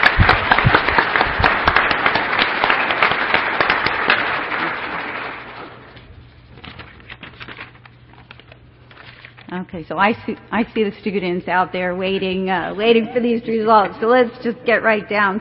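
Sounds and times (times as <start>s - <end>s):
audience applause at an academic student competition: 0.0s - 5.9s
speech: 9.7s - 15.3s.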